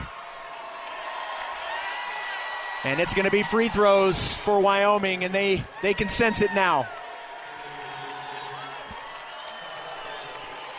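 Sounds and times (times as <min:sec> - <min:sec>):
large arena crowd roaring and cheering: 0:00.0 - 0:10.7
speech: 0:02.8 - 0:07.0.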